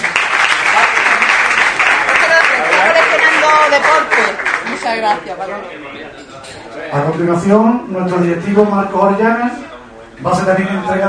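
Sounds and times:
audience applause at a municipal ceremony honouring the town's mayor: 0.0 - 5.2
speech: 3.7 - 11.0.

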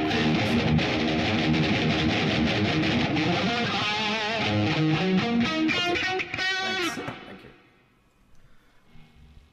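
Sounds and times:
instrument played through distortion effect: 0.0 - 7.2.

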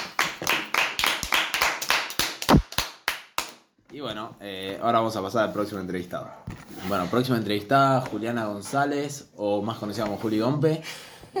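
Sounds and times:
few people clapping: 0.0 - 3.6
speech: 4.0 - 11.3.

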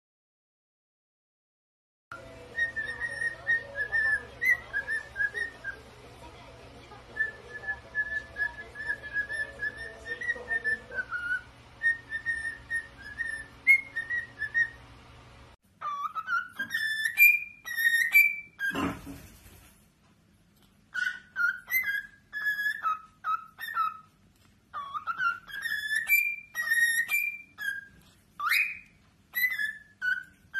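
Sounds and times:
cockatiel whistling: 2.2 - 5.9, 7.2 - 14.8, 15.8 - 19.1, 20.9 - 30.5.

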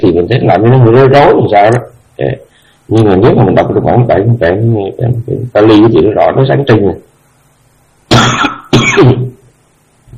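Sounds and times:
speech: 0.0 - 7.1, 9.0 - 9.2
loud harsh coughing: 8.1 - 9.4.

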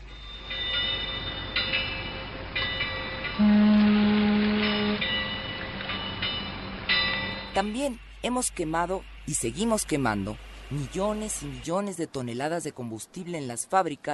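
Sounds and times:
train rolling by on rails: 0.0 - 12.1
low sustained horn-like tone: 3.4 - 5.1
speech: 7.6 - 14.1.

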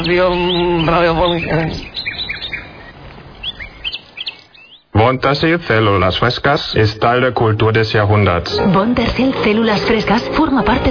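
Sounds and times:
speech: 0.0 - 2.0, 5.0 - 10.8
small birds chirping: 0.0 - 5.0.

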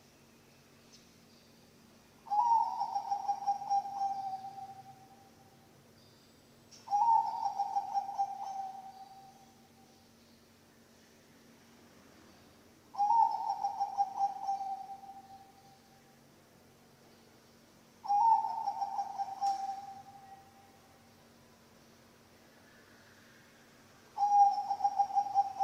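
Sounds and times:
low background hum: 0.0 - 25.6
zebra dove cooing: 2.3 - 5.2, 6.9 - 9.4, 12.9 - 15.7, 18.0 - 20.6, 24.2 - 25.6.

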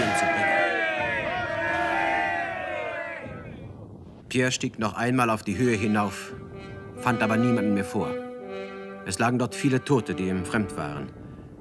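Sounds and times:
Russian soldiers shouting hurrah battle cry: 0.0 - 3.6
speech: 4.3 - 8.2, 9.1 - 11.2.

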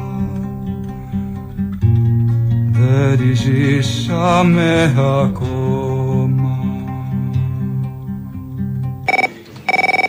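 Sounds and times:
low sustained music-like tones: 0.0 - 9.1
speech: 3.2 - 5.7
telephone ringing: 9.1 - 10.0.

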